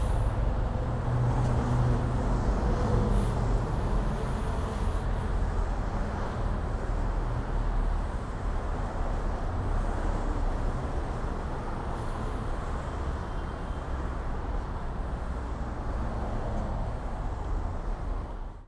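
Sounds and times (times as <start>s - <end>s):
expressway traffic passing: 0.0s - 18.6s.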